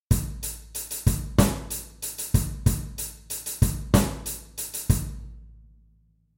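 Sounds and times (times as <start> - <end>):
snare drum: 0.1 - 5.2.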